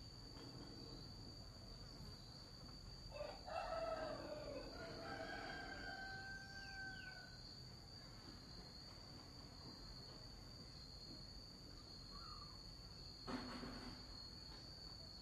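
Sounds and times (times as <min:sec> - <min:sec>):
morning ambience in Vietnam: 0:00.0 - 0:15.1.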